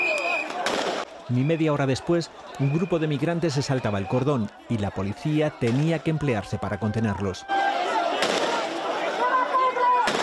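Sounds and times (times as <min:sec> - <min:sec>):
murmuring voices of noisy crowd: 0:00.0 - 0:10.2
gunshots fired into the air: 0:00.5 - 0:01.1, 0:08.2 - 0:08.7, 0:10.0 - 0:10.2
speech: 0:01.3 - 0:08.0.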